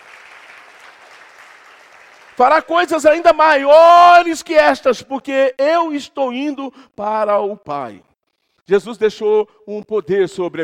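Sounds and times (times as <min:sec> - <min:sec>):
audience applauding enthusiastically: 0:00.0 - 0:02.7
speech: 0:02.4 - 0:08.1, 0:08.7 - 0:10.6.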